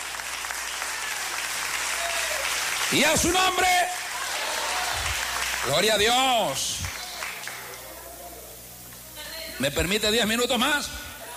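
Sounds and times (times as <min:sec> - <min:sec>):
audience applause: 0:00.0 - 0:06.2, 0:06.8 - 0:07.9
speech: 0:02.9 - 0:04.0, 0:05.6 - 0:06.9, 0:09.6 - 0:11.0.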